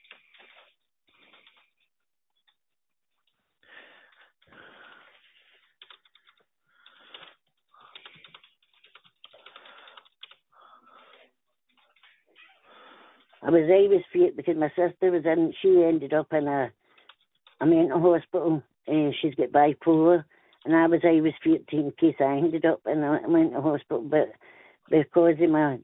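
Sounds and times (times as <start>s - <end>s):
faint typing of notes on a computer keyboard: 0.0s - 1.7s, 5.7s - 10.4s, 16.9s - 17.6s
speech: 13.4s - 16.8s, 17.6s - 25.8s.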